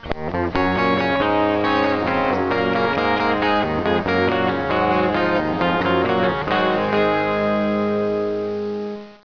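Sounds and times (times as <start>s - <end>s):
rock music: 0.0s - 9.0s.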